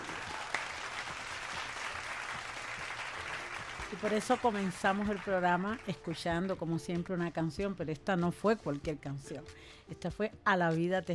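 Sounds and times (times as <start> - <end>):
audience applause: 0.0 - 5.5
speech: 3.9 - 11.1.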